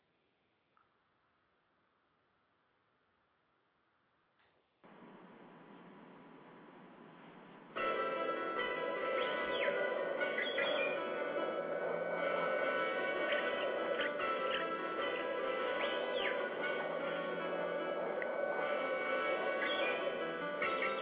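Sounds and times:
birds chirping on a Sunday morning: 8.3 - 21.0.

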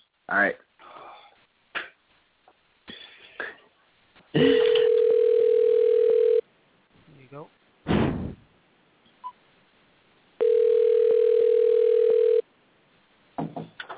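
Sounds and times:
person coughing: 4.3 - 4.8
house phone dial tone during call: 4.6 - 6.4, 10.4 - 12.4.

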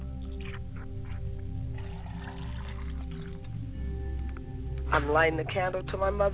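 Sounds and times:
water poured as a libation: 0.0 - 3.9
speech: 4.9 - 6.3.

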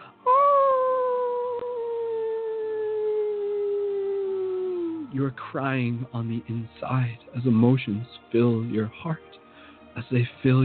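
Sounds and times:
wolf howling: 0.2 - 5.1
speech: 5.1 - 9.4, 10.0 - 10.6.

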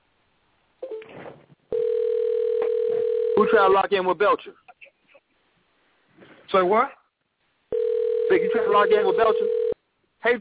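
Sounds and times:
telephone call tone ringing through to voicemail: 1.7 - 3.4, 7.7 - 9.8
recorded voicemail voice speaking: 3.4 - 4.6, 8.3 - 9.6
speech: 3.4 - 4.7, 6.5 - 7.0, 8.3 - 9.6.

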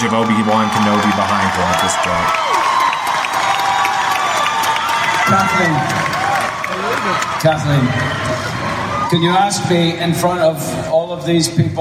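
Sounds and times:
speech: 0.0 - 2.6, 5.3 - 6.2, 6.8 - 8.5, 9.1 - 11.7
scattered applause: 0.0 - 9.1
crowd cheering wildly at D23: 0.0 - 9.7.

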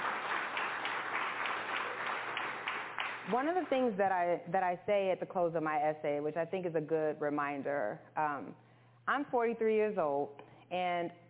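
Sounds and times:
audience clapping: 0.0 - 3.8
speech: 3.3 - 11.2.

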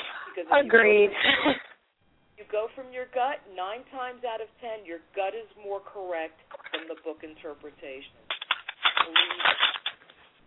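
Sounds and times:
speech: 0.4 - 1.6, 2.5 - 8.2, 9.0 - 9.7
deck of oracle cards being shuffled: 8.3 - 10.4.

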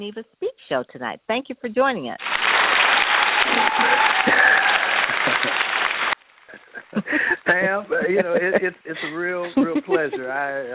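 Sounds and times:
speech: 0.0 - 2.8, 3.5 - 5.7, 6.5 - 10.7
audience applause: 2.2 - 6.2
laughter: 3.4 - 10.7.

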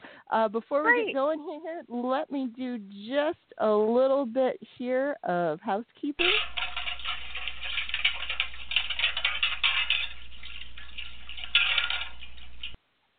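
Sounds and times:
speech: 0.3 - 6.5
metal plates clattering while washed in a metal wash tub on a stove: 6.2 - 12.8
water splashing in a metal wash tub: 6.2 - 12.8.

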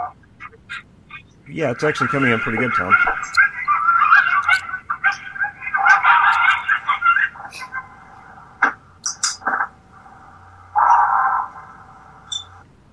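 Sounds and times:
coyotes yipping: 0.0 - 9.8, 10.4 - 12.6
speech: 1.5 - 3.4.

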